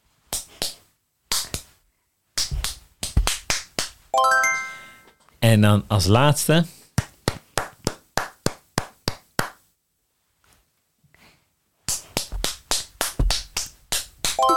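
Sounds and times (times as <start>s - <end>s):
hand claps: 0.3s - 1.7s, 2.4s - 4.0s, 7.0s - 9.6s, 11.9s - 14.5s
speech: 5.5s - 6.8s.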